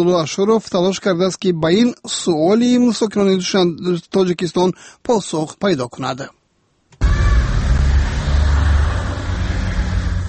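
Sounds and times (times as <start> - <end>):
speech: 0.0 - 6.4
official cars of Tajik government officials driving out in Dushanbe: 7.0 - 10.2.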